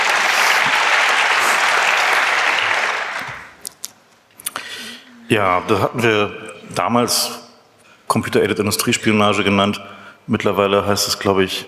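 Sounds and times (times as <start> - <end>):
audience applause: 0.0 - 3.6
speech: 5.3 - 7.4, 8.1 - 11.6.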